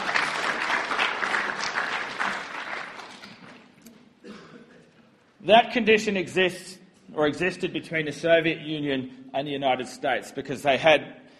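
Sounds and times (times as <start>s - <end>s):
audience applause: 0.0s - 3.7s
speech: 5.5s - 11.2s.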